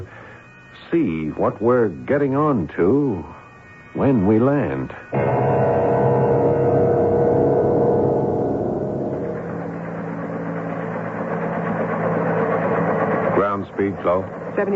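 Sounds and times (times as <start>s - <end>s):
speech: 0.9s - 5.8s, 14.0s - 14.7s
helicopter system hovering: 5.1s - 14.7s.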